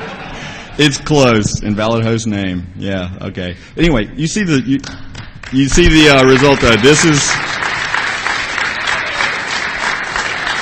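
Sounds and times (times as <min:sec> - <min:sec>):
laughter: 0:00.0 - 0:00.8
speech: 0:00.8 - 0:07.6
audience clapping: 0:04.8 - 0:10.6.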